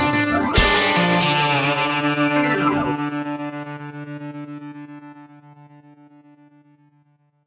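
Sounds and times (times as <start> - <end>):
victory game music: 0.2 - 3.8.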